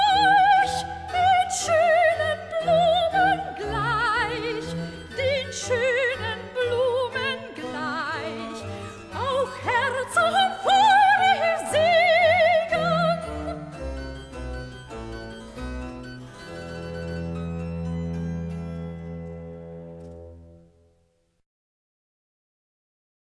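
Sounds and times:
cantata recitative: 0:00.0 - 0:13.6.

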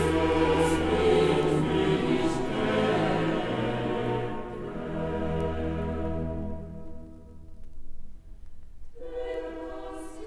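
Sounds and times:
choir singing a motet: 0:00.0 - 0:06.8, 0:09.0 - 0:10.2.

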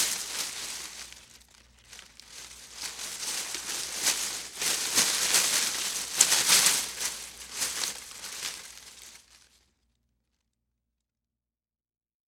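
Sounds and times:
foley footsteps of a person walking through brush: 0:00.0 - 0:09.5.

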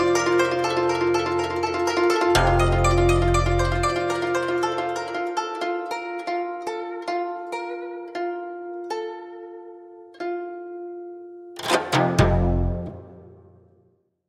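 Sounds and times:
guzheng instrumental from China: 0:00.0 - 0:13.6.

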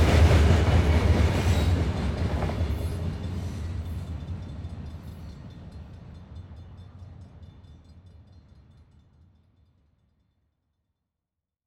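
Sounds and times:
train passing by: 0:00.0 - 0:07.5.

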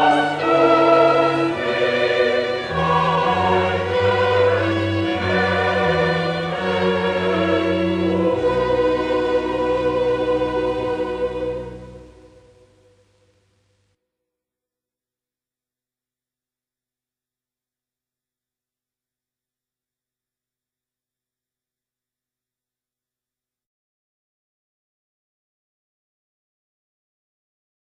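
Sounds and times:
choir singing: 0:00.0 - 0:12.9.

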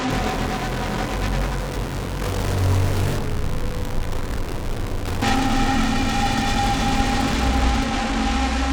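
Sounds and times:
distorted static delays: 0:00.1 - 0:08.7.

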